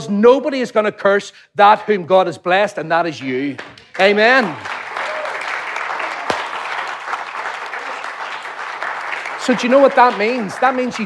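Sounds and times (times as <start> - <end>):
speech: 0.0 - 4.7, 9.5 - 11.0
audience applause: 3.9 - 11.0.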